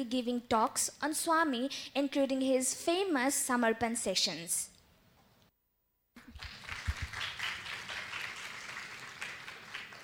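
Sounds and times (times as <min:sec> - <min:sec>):
speech: 0:00.0 - 0:04.7
audience applause: 0:06.2 - 0:10.0.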